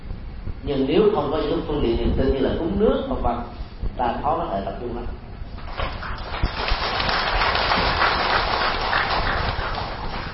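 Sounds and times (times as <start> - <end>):
speech: 0.6 - 5.2
audience applause: 5.6 - 10.3.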